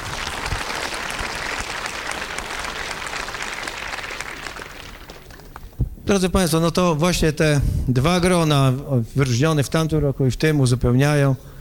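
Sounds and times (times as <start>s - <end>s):
audience applause: 0.0s - 5.7s
speech: 6.1s - 11.5s.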